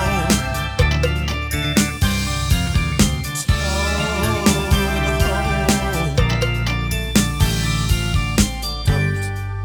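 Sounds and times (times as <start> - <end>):
drums: 0.0 - 9.5.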